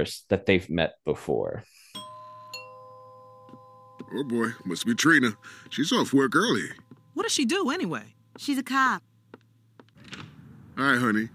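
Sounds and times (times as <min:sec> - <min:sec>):
speech: 0:00.0 - 0:01.8, 0:04.0 - 0:09.1, 0:10.8 - 0:11.3
two-tone doorbell chime: 0:01.9 - 0:09.0.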